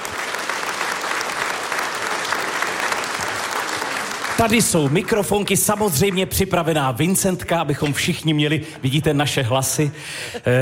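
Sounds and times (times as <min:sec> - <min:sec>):
audience applause in a historic hall in Luhačovice: 0:00.0 - 0:06.8
speech: 0:04.4 - 0:10.6.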